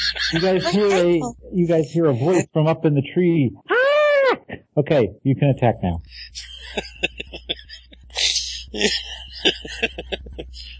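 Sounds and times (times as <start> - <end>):
laughter: 0.0 - 2.5, 6.0 - 10.7
speech: 0.1 - 3.8, 4.8 - 7.4, 8.7 - 10.7
person coughing: 0.2 - 1.3, 6.2 - 10.7.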